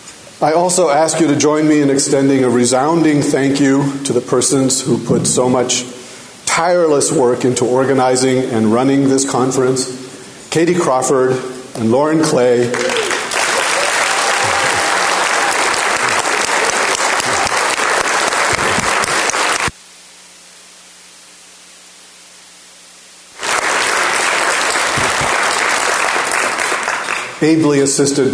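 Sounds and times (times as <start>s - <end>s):
speech: 0.4s - 6.0s, 6.6s - 12.9s, 27.4s - 28.3s
large audience clapping at a conference: 12.6s - 19.8s, 23.4s - 27.5s.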